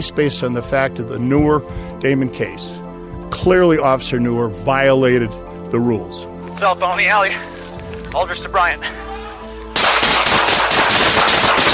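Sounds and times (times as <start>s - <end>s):
speech: 0.0s - 7.5s, 8.1s - 9.0s
gunshots fired: 9.8s - 11.7s.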